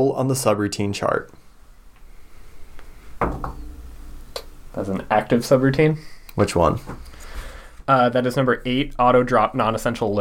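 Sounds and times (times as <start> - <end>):
speech: 0.0 - 1.4, 4.8 - 7.1, 7.9 - 10.2
knocking on a door: 3.2 - 3.8.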